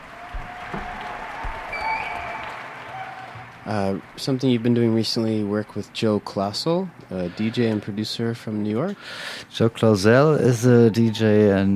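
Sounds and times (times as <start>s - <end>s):
faint whistles and cheers: 0.0s - 4.1s
crowd applauding: 0.0s - 5.5s
speech: 0.7s - 1.0s, 3.6s - 11.7s.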